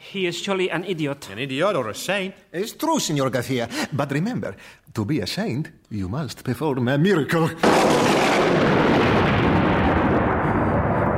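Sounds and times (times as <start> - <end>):
speech: 0.1 - 9.2
thunder-like rumble dramatic sound effect: 7.6 - 11.1.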